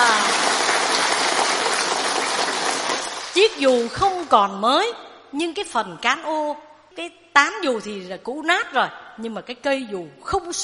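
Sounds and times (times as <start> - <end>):
applause: 0.0 - 4.0
speech: 3.4 - 10.6.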